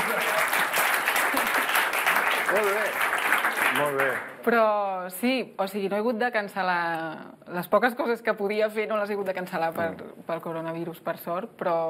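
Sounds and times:
small group applauding: 0.0 - 4.4
speech: 2.5 - 3.1, 3.8 - 11.8.

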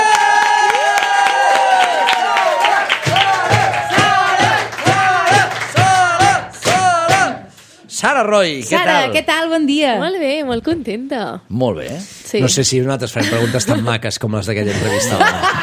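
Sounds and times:
loud audience applause: 0.0 - 7.6
speech: 8.0 - 15.6
laughter: 13.2 - 14.0, 14.6 - 15.6.

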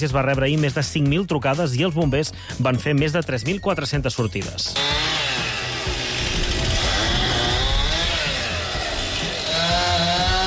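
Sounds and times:
speech: 0.0 - 5.3
chainsaw cutting fallen trees: 4.8 - 10.4.

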